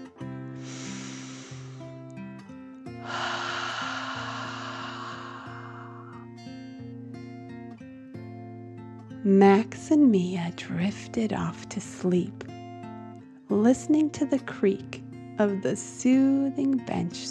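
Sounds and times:
gentle steady music: 0:00.0 - 0:17.2
deep breath in and out: 0:00.6 - 0:02.1, 0:03.0 - 0:06.3
speech: 0:09.2 - 0:12.5, 0:13.5 - 0:17.2.

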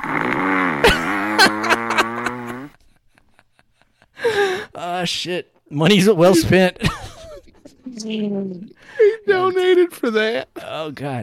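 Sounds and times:
woman snoring: 0:00.0 - 0:02.7
laughter: 0:00.8 - 0:04.7, 0:06.0 - 0:10.1
speech: 0:05.0 - 0:06.9, 0:08.1 - 0:11.2.

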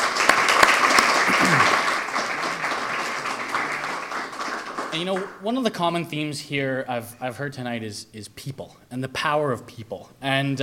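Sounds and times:
round of applause: 0:00.0 - 0:05.4
speech: 0:04.9 - 0:10.6.

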